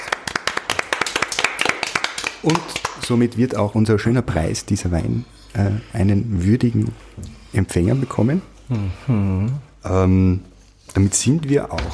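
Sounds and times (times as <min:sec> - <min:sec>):
clapping: 0:00.0 - 0:03.1
speech: 0:02.4 - 0:11.9.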